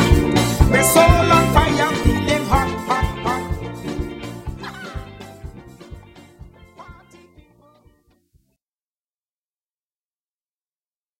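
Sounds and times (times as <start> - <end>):
Caribbean steel band playing: 0.0 - 7.2.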